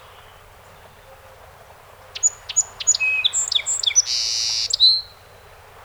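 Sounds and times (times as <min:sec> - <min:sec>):
song sparrow singing: 0:02.1 - 0:05.3.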